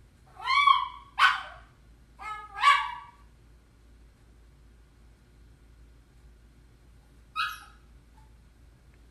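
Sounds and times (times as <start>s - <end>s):
hunting dog yelping barks: 0.3s - 3.3s, 7.4s - 7.9s.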